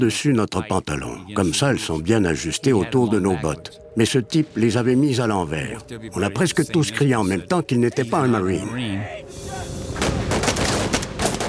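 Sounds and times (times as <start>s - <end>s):
speech: 0.0s - 9.5s
gunfire as Marines shoot a Japanese soldier disguised as a Marine: 10.0s - 11.4s.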